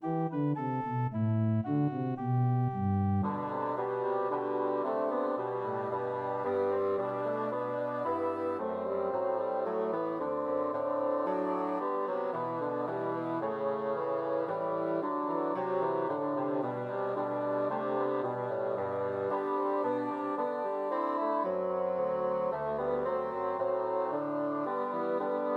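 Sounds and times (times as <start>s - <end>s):
three bassoons playing a Christmas carol trio: 0.0s - 25.5s.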